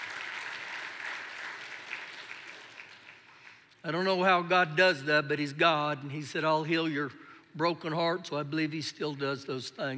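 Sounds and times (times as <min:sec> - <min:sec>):
audience clapping: 0:00.0 - 0:03.8
speech: 0:03.8 - 0:09.9.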